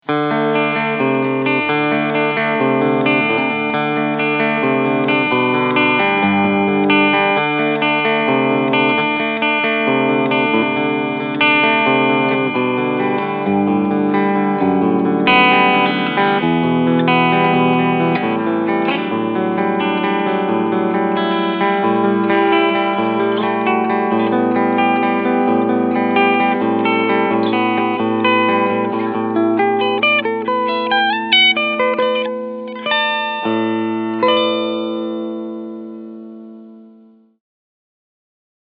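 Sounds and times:
Traveler Guitar EG-1 Custom clean picking: 0.0 - 37.3.

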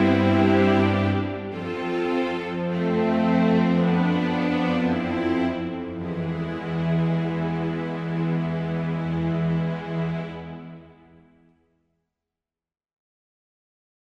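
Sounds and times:
string ensemble playing: 0.0 - 11.2.

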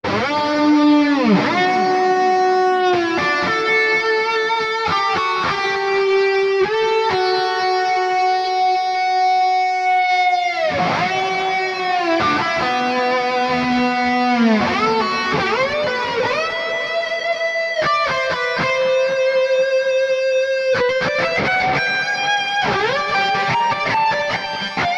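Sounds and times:
Mesa Boogie epic guitar lead: 0.0 - 24.9.

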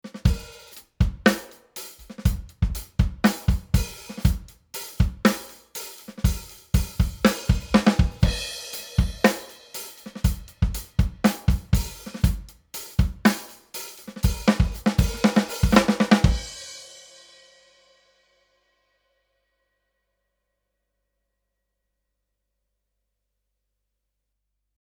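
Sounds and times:
drums without compressor: 0.0 - 18.1.

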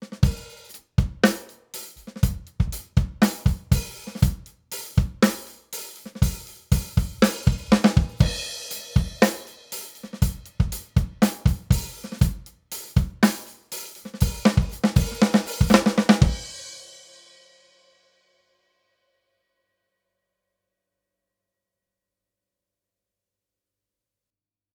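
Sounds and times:
drums through Summit Audio EQP 200B equalizer: 0.0 - 18.0.

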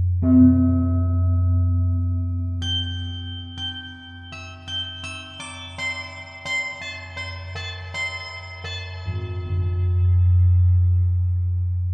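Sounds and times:
pentatonic melody: 0.2 - 11.8.

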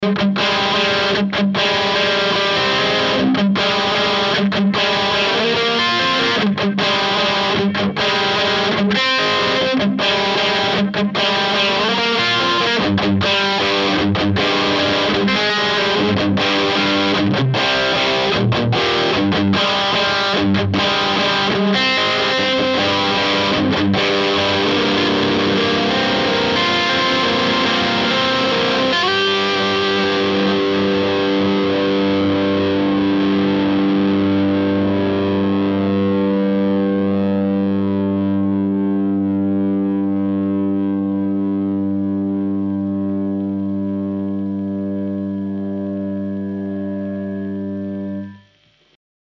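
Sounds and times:
Ibanez RGD71AL electric guitar with Zerre bridge: 0.0 - 49.0.

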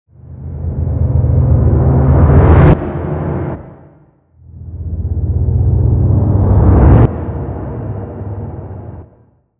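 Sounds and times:
rising sound: 0.2 - 9.4.

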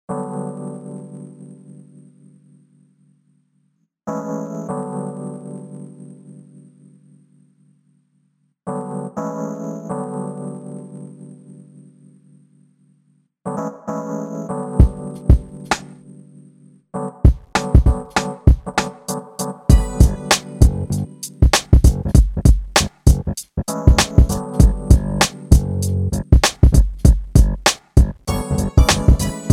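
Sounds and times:
acid jazz: 17.6 - 29.5.

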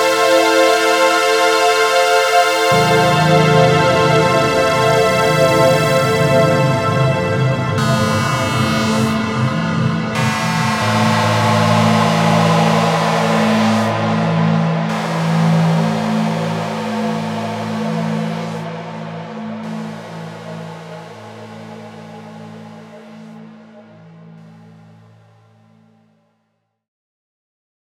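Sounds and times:
Lexicon PCM70 psycho echoes synth: 0.0 - 19.6.

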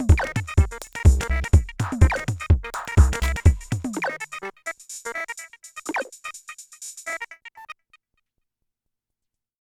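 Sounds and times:
Korg drumlogue glitch drum machine: 0.0 - 7.6.

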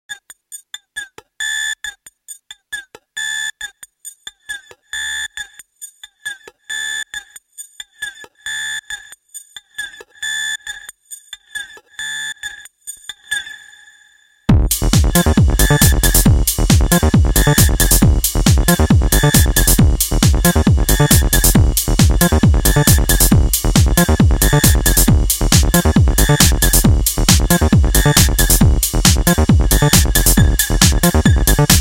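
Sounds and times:
JunoDS88 acid synth sequence: 14.5 - 31.7.

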